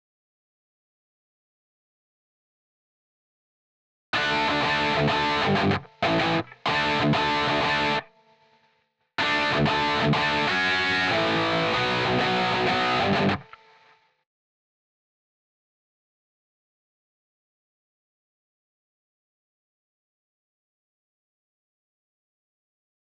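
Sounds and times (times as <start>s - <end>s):
background guitar: 4.2s - 14.1s.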